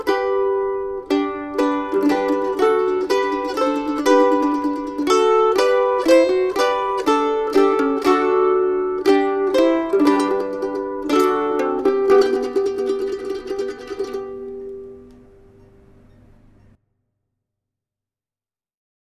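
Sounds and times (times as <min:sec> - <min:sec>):
mandolin playing a Christmas carol: 0:00.0 - 0:16.6.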